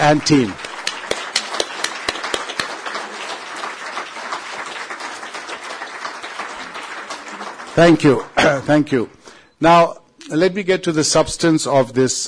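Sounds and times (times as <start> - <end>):
audience applause: 0.0 - 9.0
speech: 0.1 - 0.6, 7.8 - 12.2.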